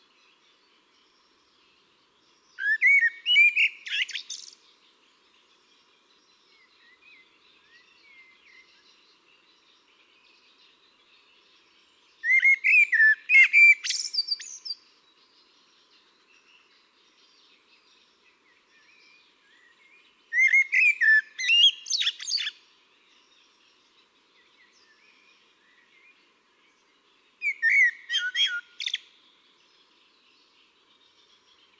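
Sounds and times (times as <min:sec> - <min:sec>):
Eurasian blackbird singing: 0:00.0 - 0:31.7
faint birdsong: 0:00.0 - 0:31.7.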